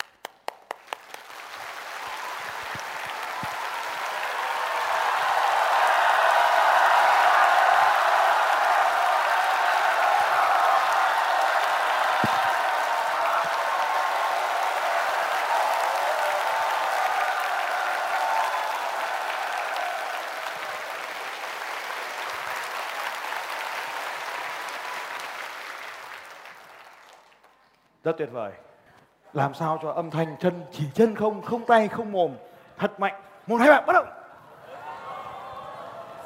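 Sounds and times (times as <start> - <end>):
group of people clapping their hands in sustained applause: 0.0 - 28.0
speech: 28.0 - 28.6, 29.3 - 34.2.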